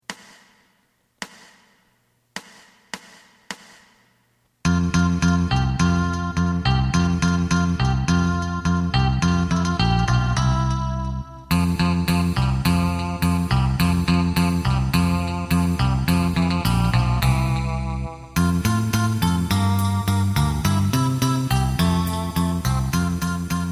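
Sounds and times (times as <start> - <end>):
lead melody: 4.6 - 23.7.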